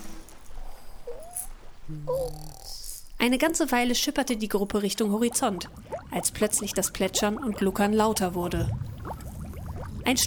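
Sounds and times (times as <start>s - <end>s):
band members snoring: 0.0s - 3.1s
thin whistling tone: 0.0s - 3.6s
speech: 1.9s - 8.9s, 10.0s - 10.2s.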